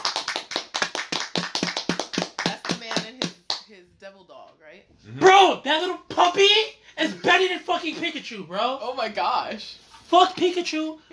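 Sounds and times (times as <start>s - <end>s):
hands clapping in applause: 0.0s - 3.7s
speech: 5.1s - 11.1s.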